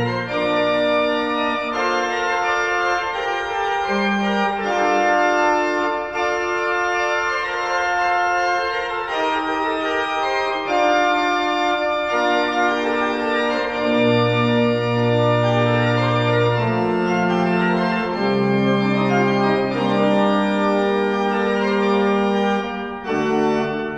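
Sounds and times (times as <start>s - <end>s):
municipal evening bells ringing: 0.0s - 23.9s.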